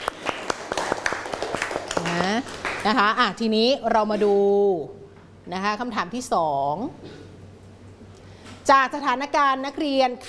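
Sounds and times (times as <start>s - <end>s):
classroom students clapping for a classmate: 0.0s - 3.0s
speech: 2.8s - 7.2s, 8.7s - 10.2s.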